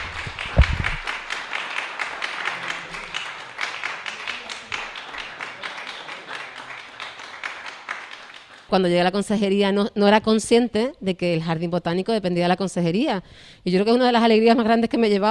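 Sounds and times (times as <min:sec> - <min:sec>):
audience applause: 0:00.0 - 0:08.7
speech: 0:08.7 - 0:15.2.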